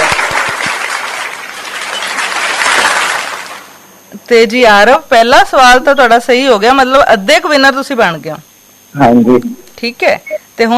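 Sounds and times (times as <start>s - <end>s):
applause for a quiz show contestant: 0.0s - 3.8s
speech: 4.3s - 10.7s.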